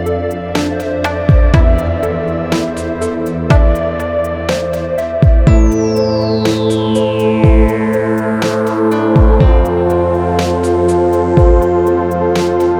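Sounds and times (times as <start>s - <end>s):
ambient techno house music: 0.0s - 12.7s.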